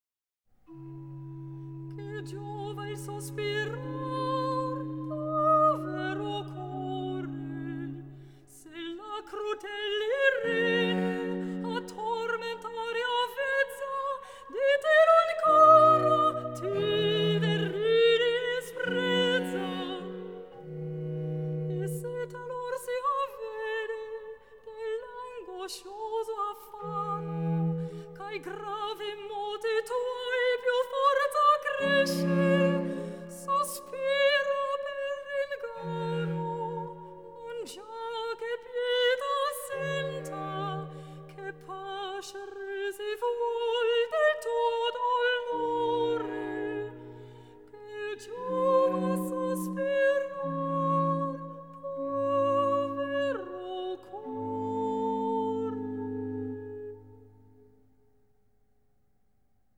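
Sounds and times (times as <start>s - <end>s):
soprano solo singing cantata recitative: 0.7s - 57.3s.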